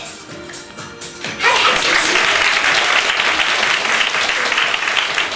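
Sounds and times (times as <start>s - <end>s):
crowd clapping: 1.3s - 5.3s.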